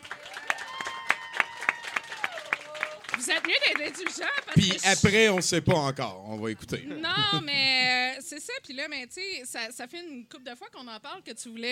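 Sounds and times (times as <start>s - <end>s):
audience applause: 0.0s - 5.9s
laughter: 3.2s - 8.1s
speech: 3.3s - 11.7s.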